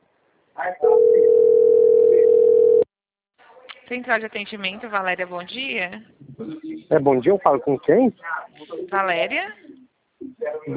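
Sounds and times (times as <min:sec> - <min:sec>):
speech: 0:00.6 - 0:01.5, 0:03.9 - 0:09.7, 0:10.4 - 0:10.7
telephone dial tone: 0:01.0 - 0:02.8.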